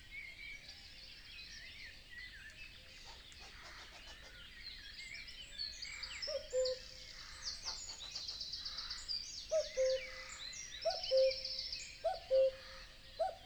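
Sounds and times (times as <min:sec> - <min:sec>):
Common Cuckoo song in a European wetland: 0:09.5 - 0:10.1, 0:10.9 - 0:11.4, 0:12.0 - 0:12.6, 0:13.2 - 0:13.4.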